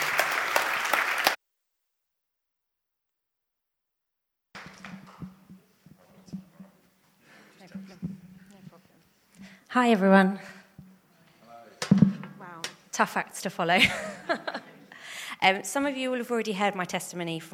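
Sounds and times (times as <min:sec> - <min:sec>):
audience applause: 0:00.0 - 0:01.4
speech: 0:09.7 - 0:10.6, 0:13.0 - 0:14.6, 0:15.4 - 0:17.5
laughter: 0:13.7 - 0:15.0.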